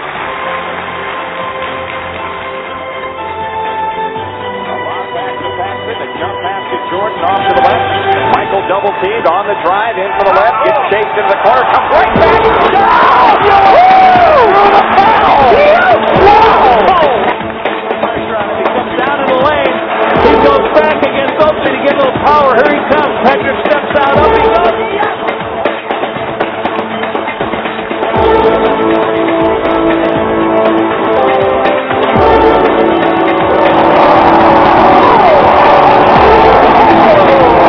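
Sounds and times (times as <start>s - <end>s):
large crowd clapping and cheering: 0.0s - 6.1s, 6.9s - 37.6s
voices shouting over the applause: 10.2s - 17.3s, 32.3s - 37.6s.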